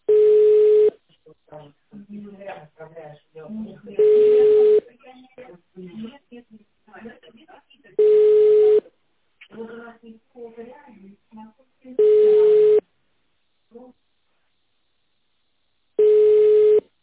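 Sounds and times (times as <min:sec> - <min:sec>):
telephone ringback tone while placing a call: 0:00.1 - 0:01.0, 0:04.0 - 0:04.8, 0:08.0 - 0:08.8, 0:12.0 - 0:12.8, 0:16.0 - 0:16.8
person talking: 0:01.1 - 0:08.2, 0:09.4 - 0:12.8.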